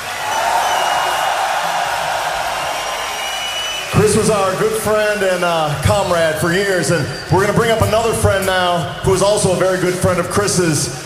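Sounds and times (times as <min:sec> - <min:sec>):
audience applause: 0:00.0 - 0:05.8
speech: 0:04.1 - 0:11.0.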